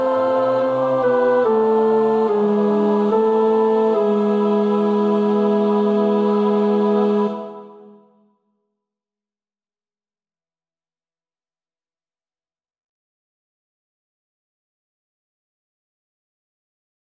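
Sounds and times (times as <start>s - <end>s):
tenor practising a choir part: 0.0s - 8.2s.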